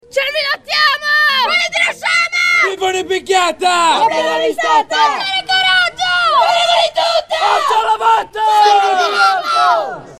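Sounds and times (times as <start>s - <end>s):
scout patrol calls: 0.1s - 10.0s.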